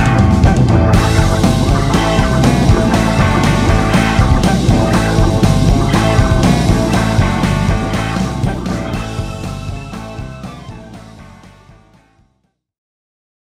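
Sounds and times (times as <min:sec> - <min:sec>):
Hammond organ rock music: 0:00.0 - 0:12.4.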